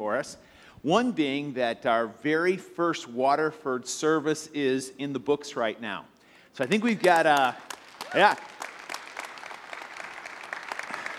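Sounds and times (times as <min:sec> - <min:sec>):
speech: 0:00.0 - 0:08.5
church congregation clapping at a weekend service: 0:06.6 - 0:11.1.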